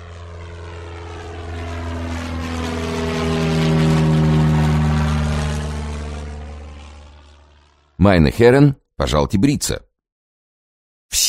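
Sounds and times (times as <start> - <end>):
propeller aircraft diving in a spiral: 0.0 - 8.0
speech: 8.0 - 9.9.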